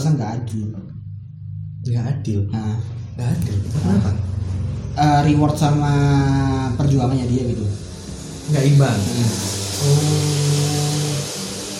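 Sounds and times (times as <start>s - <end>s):
speech: 0.0s - 1.0s, 1.8s - 4.4s, 5.0s - 7.8s, 8.5s - 10.8s
motorbike passing by outside: 3.0s - 11.7s.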